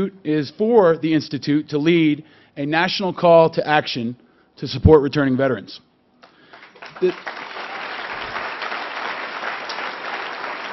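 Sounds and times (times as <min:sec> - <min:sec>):
speech: 0:00.0 - 0:05.9, 0:07.0 - 0:07.4
audience applause: 0:06.5 - 0:10.7.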